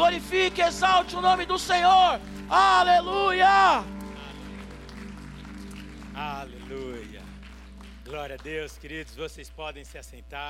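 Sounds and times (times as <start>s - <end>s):
speech: 0.0s - 4.0s, 8.1s - 10.4s
audience applauding: 0.0s - 10.1s.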